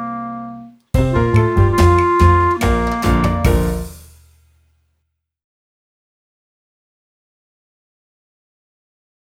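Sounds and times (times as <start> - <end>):
clarinet: 0.0 - 4.0.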